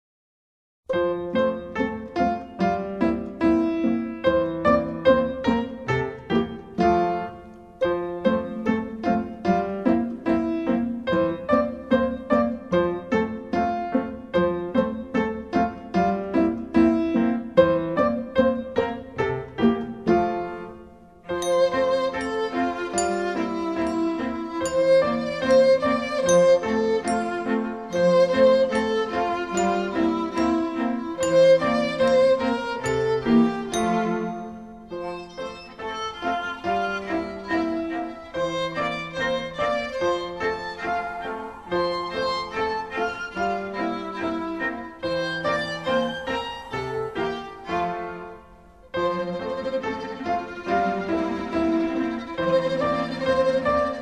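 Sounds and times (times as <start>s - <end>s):
music: 0.9s - 54.0s.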